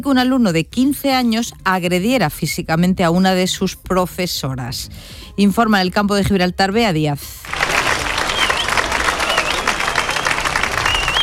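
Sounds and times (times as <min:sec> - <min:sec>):
speech: 0:00.0 - 0:07.6
ovation from teachers and students: 0:07.5 - 0:11.2
faint whistles: 0:08.3 - 0:11.2.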